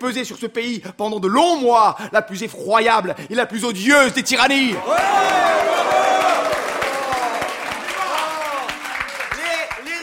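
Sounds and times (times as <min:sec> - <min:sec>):
speech: 0:00.0 - 0:06.1
general crowd noise in a parliamentary chamber: 0:04.7 - 0:09.7
scattered applause in a parliamentary chamber: 0:04.7 - 0:10.0.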